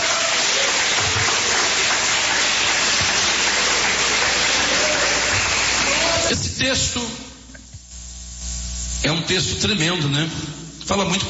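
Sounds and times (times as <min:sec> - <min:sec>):
audience applauding: 0:00.0 - 0:06.4
speech: 0:06.6 - 0:07.3, 0:09.0 - 0:11.2.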